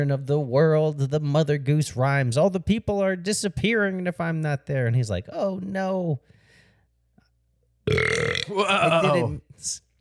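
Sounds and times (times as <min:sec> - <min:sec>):
speech: 0:00.0 - 0:06.4, 0:07.9 - 0:09.8
burp: 0:07.9 - 0:09.3.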